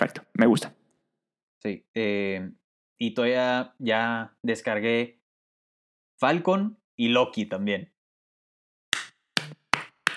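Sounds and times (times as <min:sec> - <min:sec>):
speech: 0:00.0 - 0:00.8, 0:01.6 - 0:05.2, 0:06.2 - 0:07.9
one person clapping hands: 0:09.0 - 0:10.1.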